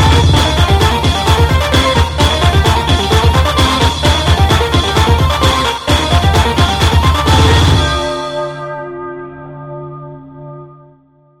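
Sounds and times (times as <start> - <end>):
techno arrangement of a Christmas carol: 0.0 - 8.7.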